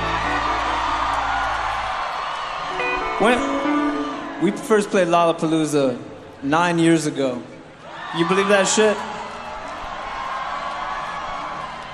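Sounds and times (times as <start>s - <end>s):
large concert crowd cheering: 0.0s - 5.8s, 7.7s - 11.9s
speech: 3.2s - 3.6s, 4.4s - 7.5s, 8.1s - 9.1s.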